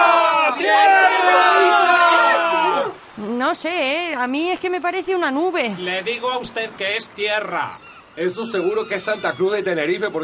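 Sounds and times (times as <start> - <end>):
crowd shouting in unison: 0.0 - 3.0
speech: 3.5 - 10.2.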